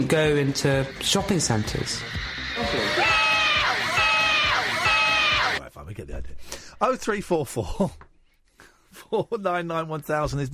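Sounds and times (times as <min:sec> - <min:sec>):
speech: 0:00.0 - 0:03.2, 0:06.0 - 0:08.0, 0:09.0 - 0:10.5
aggressive fan shouting: 0:02.6 - 0:05.6.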